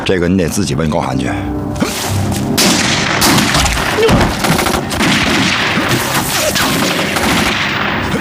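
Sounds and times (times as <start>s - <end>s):
speech: 0.1s - 1.9s
rapid gunfire: 2.6s - 8.1s.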